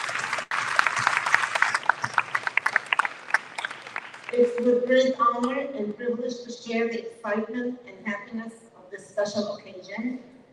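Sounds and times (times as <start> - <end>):
audience applause: 0.0 - 4.7
speech: 4.3 - 10.3.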